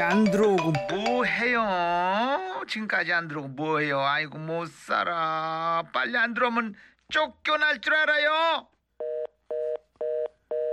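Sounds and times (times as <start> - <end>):
speech: 0.0 - 8.7
telephone busy tone after call hangs up: 9.0 - 10.7.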